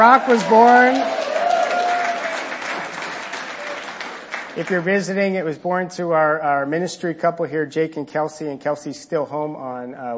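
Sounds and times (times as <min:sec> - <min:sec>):
speech: 0:00.0 - 0:01.2, 0:04.6 - 0:10.1
audience applause: 0:00.0 - 0:05.0.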